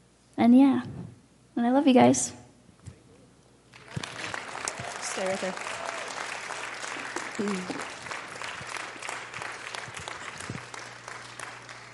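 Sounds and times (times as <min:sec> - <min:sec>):
faint low hum: 0:00.0 - 0:11.9
speech: 0:00.4 - 0:01.0, 0:01.6 - 0:02.4, 0:05.2 - 0:05.7, 0:07.4 - 0:07.9
large audience applauding: 0:03.7 - 0:11.9
person cheering: 0:04.7 - 0:06.4.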